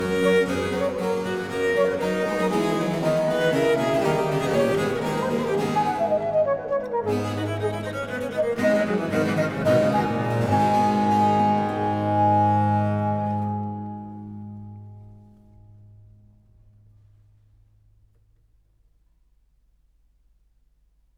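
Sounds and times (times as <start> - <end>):
sonata in A minor allegro: 0.0 - 15.6.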